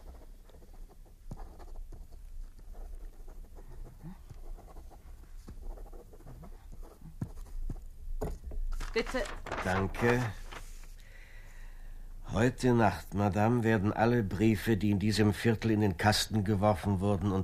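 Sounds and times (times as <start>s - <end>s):
pen scratching across a sheet of paper writing a name and address: 0.0s - 7.8s
pen tapping on paper: 3.8s - 8.4s
speech: 9.0s - 10.4s, 12.4s - 17.4s.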